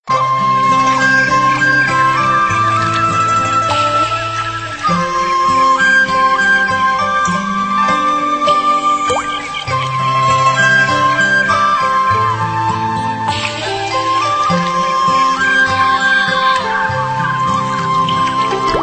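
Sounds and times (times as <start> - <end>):
spring pond ambience: 0.1 - 18.8.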